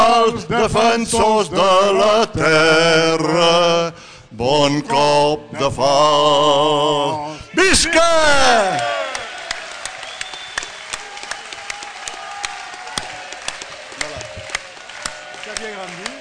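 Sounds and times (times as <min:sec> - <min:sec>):
speech: 0:00.3 - 0:09.0
voices shouting and cheering: 0:07.6 - 0:16.1
large crowd applauding: 0:08.4 - 0:16.1.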